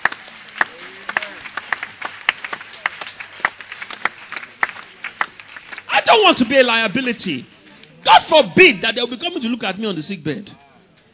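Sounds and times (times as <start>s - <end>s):
few people clapping: 0.0s - 6.4s
speech: 6.0s - 10.6s.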